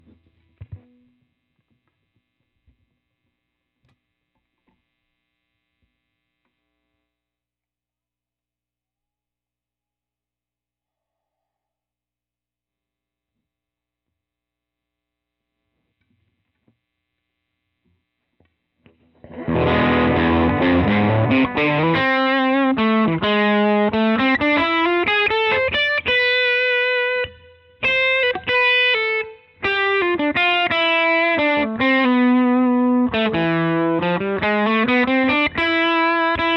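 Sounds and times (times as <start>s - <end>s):
guitar solo: 19.2s - 36.5s.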